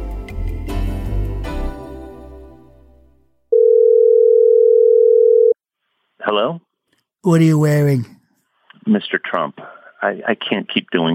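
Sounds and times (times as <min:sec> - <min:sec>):
telephone call dial tone: 0:03.5 - 0:05.6
speech: 0:07.2 - 0:08.2, 0:08.8 - 0:11.1.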